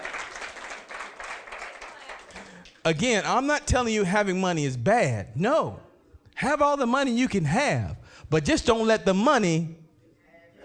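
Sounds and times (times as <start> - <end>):
crowd clapping: 0.0 - 2.9
speech: 2.8 - 5.8, 6.4 - 9.8.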